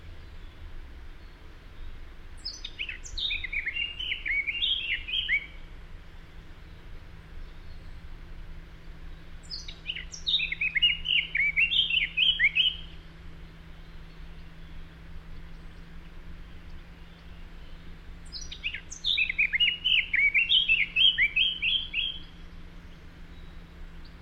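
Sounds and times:
faint low hum: 0.0 - 24.2
Eurasian blackcap singing: 1.2 - 5.6, 9.2 - 13.0, 15.4 - 24.2.

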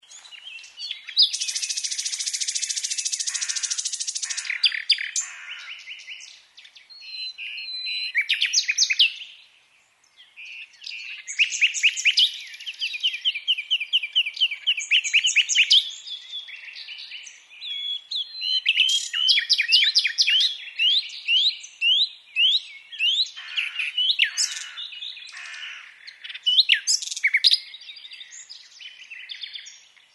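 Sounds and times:
common nightingale singing: 0.0 - 30.1.

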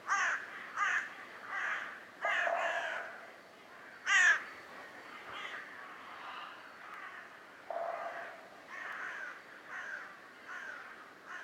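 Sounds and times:
carrion crow Corvus corone cawing: 0.1 - 3.2, 4.1 - 4.4, 6.3 - 11.4.

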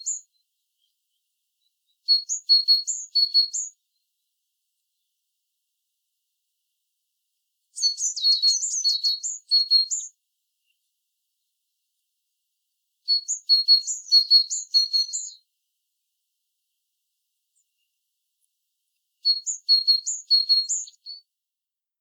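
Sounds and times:
great tit singing: 0.0 - 3.8, 7.8 - 10.9, 13.1 - 15.4, 19.2 - 21.2.

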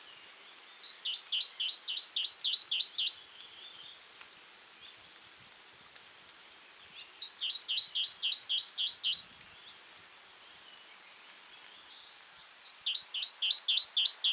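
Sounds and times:
great tit calls: 0.8 - 3.2, 7.2 - 9.3, 12.7 - 14.3.

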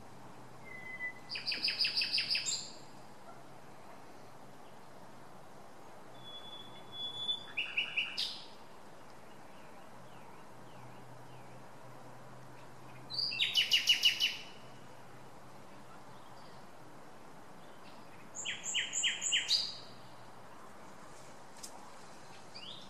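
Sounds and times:
common nightingale Luscinia megarhynchos singing whistled rattling and clicking phrases: 0.6 - 2.9, 6.1 - 8.6, 12.9 - 14.7, 17.6 - 20.3, 22.3 - 22.8.

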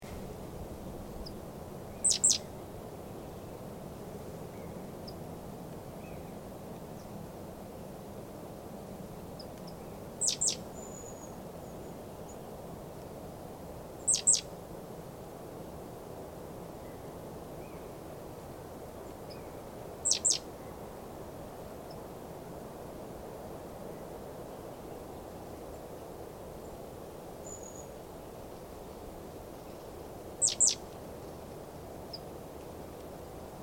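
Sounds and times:
low hiss: 0.0 - 33.6
great tit calling: 2.0 - 2.4, 10.2 - 10.6, 14.1 - 14.4, 20.0 - 20.4, 30.4 - 30.8.

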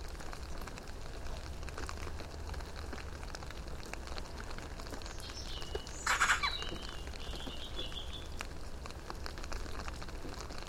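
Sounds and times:
background hiss: 0.0 - 10.5
Eurasian magpie chatter: 6.0 - 6.7.

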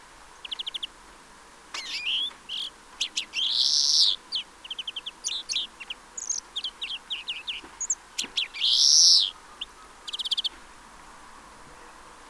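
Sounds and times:
European greenfinch trilled calls: 1.8 - 10.5.

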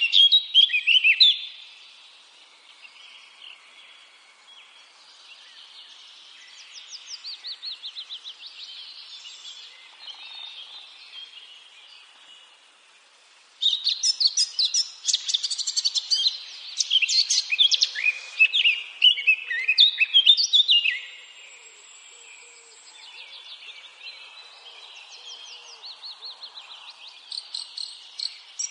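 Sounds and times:
Eurasian blackcap singing: 0.0 - 1.5, 13.6 - 21.1, 27.2 - 28.6.

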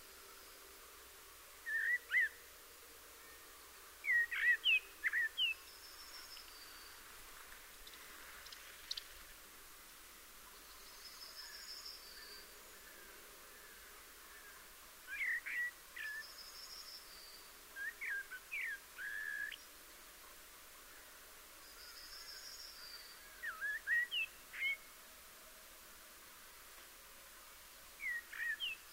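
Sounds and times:
Eurasian blackbird singing: 1.6 - 2.4, 4.0 - 6.9, 15.1 - 19.7, 21.8 - 24.8, 28.0 - 28.9.

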